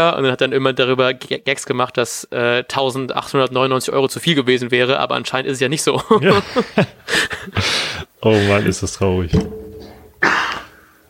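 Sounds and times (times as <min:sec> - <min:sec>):
speech: 0:00.0 - 0:09.6
laughter: 0:06.0 - 0:08.8
sharp cough: 0:10.2 - 0:10.8.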